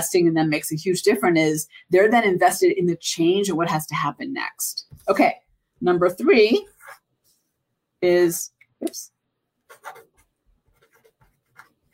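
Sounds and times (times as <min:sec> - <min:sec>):
speech: 0:00.0 - 0:06.7, 0:08.0 - 0:09.1
pen scratching while writing by hand: 0:06.6 - 0:07.0, 0:09.6 - 0:11.9.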